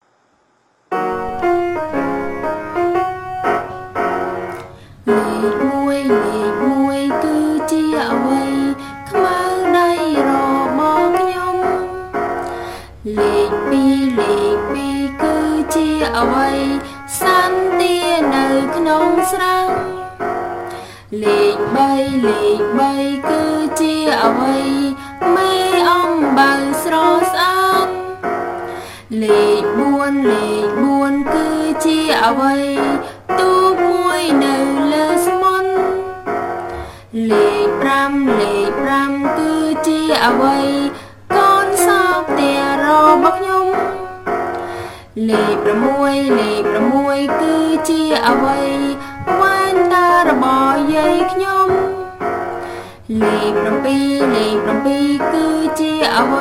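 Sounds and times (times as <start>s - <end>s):
number song: 0.9s - 56.3s.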